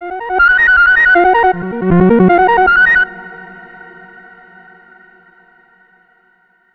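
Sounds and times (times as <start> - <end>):
tone: 0.0 - 3.2.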